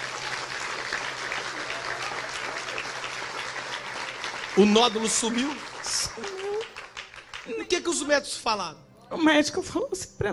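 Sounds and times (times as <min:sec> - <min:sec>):
audience applauding: 0:00.0 - 0:08.1
speech: 0:04.6 - 0:06.4, 0:07.4 - 0:10.3.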